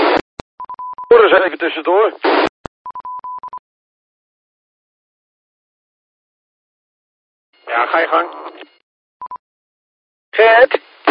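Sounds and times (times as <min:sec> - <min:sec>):
telephone dial tone during a call: 0:00.6 - 0:01.1, 0:02.8 - 0:03.6
speech: 0:01.1 - 0:02.5, 0:07.9 - 0:08.5, 0:10.4 - 0:11.0.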